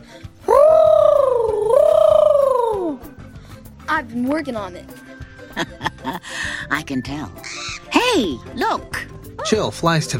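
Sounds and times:
person imitating a bird call: 0.5s - 3.0s
speech: 4.0s - 5.0s, 5.6s - 10.1s
laughter: 5.6s - 6.3s.

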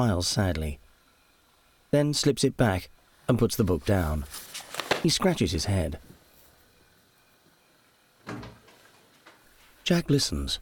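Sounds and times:
speech: 0.0s - 0.8s, 1.9s - 6.0s, 9.9s - 10.5s
kitchen door opening: 8.2s - 9.4s.

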